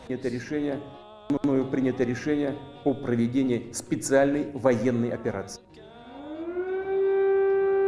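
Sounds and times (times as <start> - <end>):
speech: 0.0 - 5.6
air raid siren wailing: 5.8 - 7.8.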